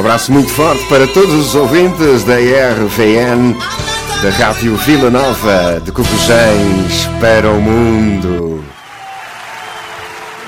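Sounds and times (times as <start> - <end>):
speech: 0.1 - 8.8
applause: 8.7 - 10.4.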